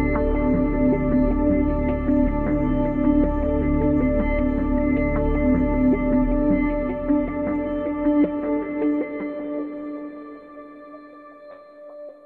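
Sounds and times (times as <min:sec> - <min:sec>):
ambient sound: 0:00.0 - 0:08.7.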